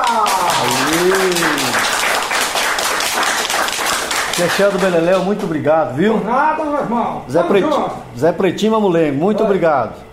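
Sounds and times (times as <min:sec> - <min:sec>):
audience applause: 0:00.0 - 0:05.2
speech: 0:04.4 - 0:10.1.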